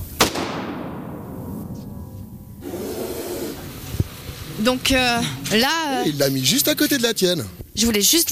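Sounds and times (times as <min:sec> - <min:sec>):
faint low noise: 0:00.0 - 0:08.2
gunshot fired at a shooting target: 0:00.2 - 0:02.6
speech: 0:04.6 - 0:08.2.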